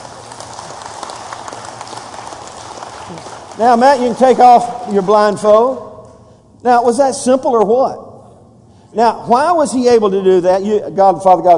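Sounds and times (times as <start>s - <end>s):
audience applause: 0.0s - 5.4s
speech: 3.1s - 5.9s, 6.6s - 8.1s, 8.9s - 11.5s.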